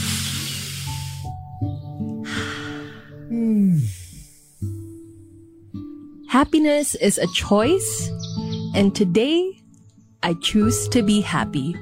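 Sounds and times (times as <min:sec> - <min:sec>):
people taking deep breaths during a relaxation exercise: 0:02.2 - 0:05.0
speech: 0:06.4 - 0:08.2, 0:08.8 - 0:09.6, 0:10.2 - 0:11.8.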